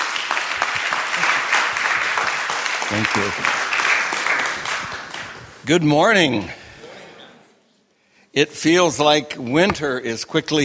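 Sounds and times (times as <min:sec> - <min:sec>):
audience applause at a church gathering: 0:00.0 - 0:05.6
speech: 0:02.9 - 0:03.6, 0:05.6 - 0:06.6, 0:08.4 - 0:10.6.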